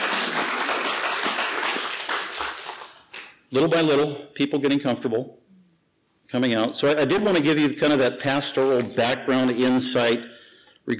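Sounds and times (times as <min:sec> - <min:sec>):
audience clapping: 0:00.0 - 0:03.4
speech: 0:03.5 - 0:05.4, 0:06.3 - 0:10.3.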